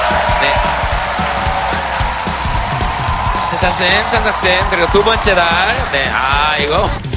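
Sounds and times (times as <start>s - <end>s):
audience applause welcoming panelists: 0.0s - 6.8s
speech: 3.6s - 7.0s.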